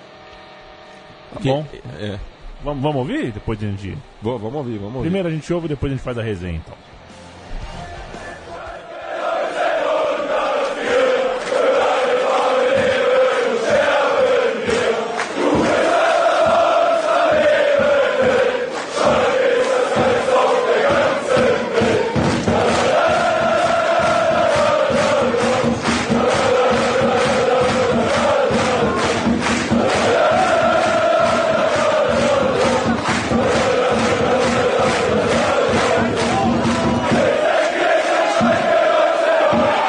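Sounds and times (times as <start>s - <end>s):
speech: 1.3s - 7.0s
football supporters chanting in stadium: 7.8s - 39.8s
scattered claps: 8.2s - 39.8s.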